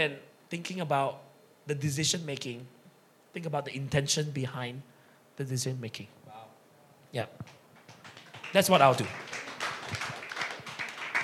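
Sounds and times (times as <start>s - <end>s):
speech: 0.0s - 2.8s, 3.4s - 6.2s, 7.1s - 7.6s, 8.5s - 9.3s
crowd clapping: 7.5s - 11.2s.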